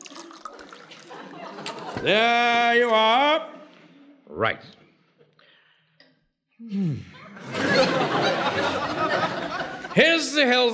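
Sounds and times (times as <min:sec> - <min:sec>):
drink pouring into a glass: 0:00.0 - 0:01.9
laughter: 0:00.9 - 0:02.9, 0:07.1 - 0:10.7
speech: 0:02.0 - 0:03.5, 0:04.4 - 0:04.8, 0:06.6 - 0:09.3, 0:10.0 - 0:10.7.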